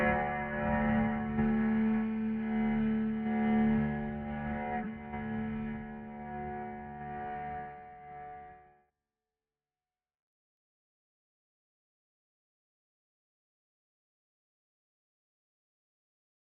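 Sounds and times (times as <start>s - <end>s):
subdued strings in D: 0.0s - 8.0s.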